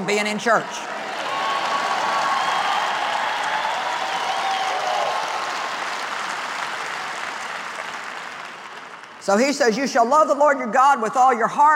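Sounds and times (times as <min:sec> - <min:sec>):
speech: 0:00.1 - 0:01.0, 0:09.3 - 0:11.7
audience clapping: 0:00.9 - 0:09.7
faint cheering and whistles: 0:01.2 - 0:05.6.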